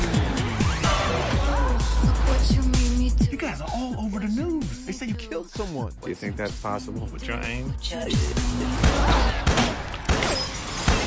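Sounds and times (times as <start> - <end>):
busy film soundtrack: 0.0 - 11.0
speech: 3.8 - 9.6
warning shot gunshots in the film Murder Mystery: 8.8 - 11.0.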